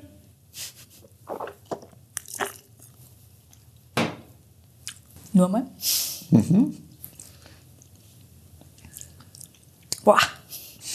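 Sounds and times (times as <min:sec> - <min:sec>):
person sipping a drink: 0:01.0 - 0:03.0
speech: 0:05.4 - 0:06.9.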